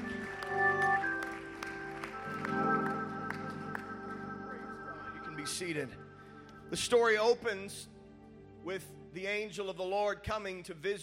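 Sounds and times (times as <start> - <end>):
audience hand clapping: 0.0 - 5.8
speech: 5.5 - 6.1, 6.7 - 7.9, 8.6 - 11.0.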